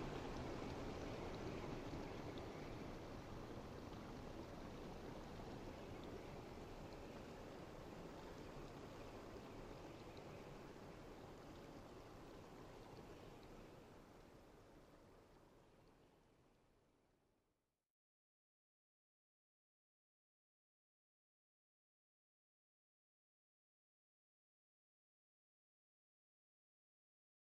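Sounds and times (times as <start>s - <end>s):
flowing water: 0.0s - 16.7s
sea: 0.0s - 17.3s.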